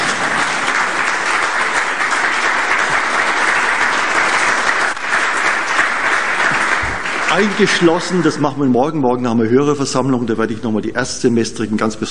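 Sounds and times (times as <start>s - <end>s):
audience clapping: 0.0s - 8.8s
speech: 7.4s - 12.1s.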